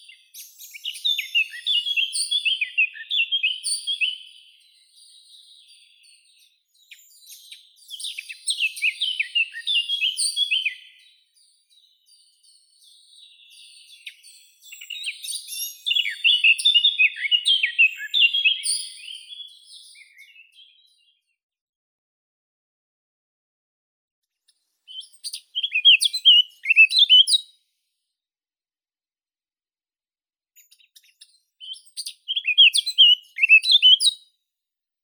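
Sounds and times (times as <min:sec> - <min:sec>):
Eurasian blackcap Sylvia atricapilla singing: 0:00.0 - 0:21.2, 0:24.9 - 0:27.5, 0:30.6 - 0:34.2.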